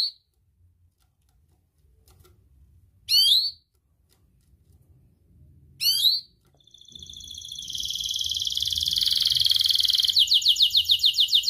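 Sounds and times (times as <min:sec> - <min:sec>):
Atlantic canary song: 0:00.0 - 0:00.4, 0:03.0 - 0:04.2, 0:05.7 - 0:11.4.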